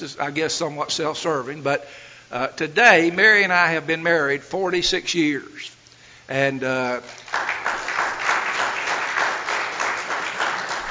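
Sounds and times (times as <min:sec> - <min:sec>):
speech: 0:00.0 - 0:07.5
audience applause at a talk: 0:07.0 - 0:10.8.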